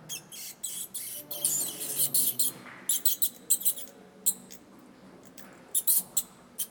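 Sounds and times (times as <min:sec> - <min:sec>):
bats chattering: 0:00.1 - 0:04.4, 0:05.8 - 0:06.6.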